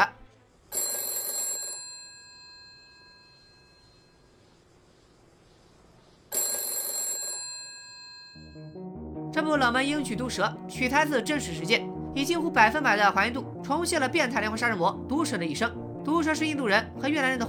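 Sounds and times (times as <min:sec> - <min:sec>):
telephone bell ringing: 0:00.7 - 0:04.4, 0:06.3 - 0:08.8
speech: 0:09.5 - 0:17.4.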